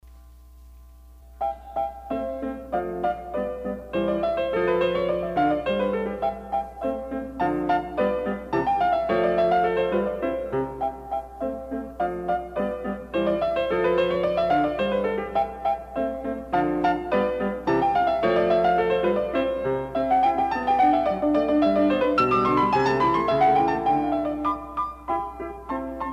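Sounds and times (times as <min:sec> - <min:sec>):
classical sonata rondo in C major, Allegretto: 0:01.4 - 0:26.1.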